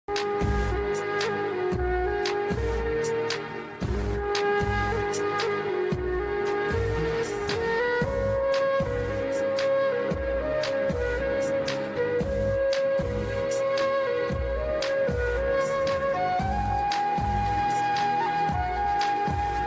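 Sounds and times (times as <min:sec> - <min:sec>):
background music: 0:00.1 - 0:19.6.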